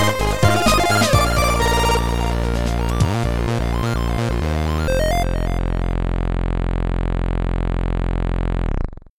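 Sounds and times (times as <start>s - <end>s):
8-bit space sounds: 0.7s - 9.1s.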